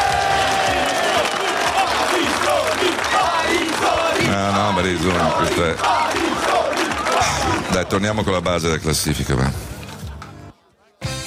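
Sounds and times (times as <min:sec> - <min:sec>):
audience applause: 0:00.0 - 0:08.6
speech: 0:04.8 - 0:06.2, 0:07.7 - 0:09.7.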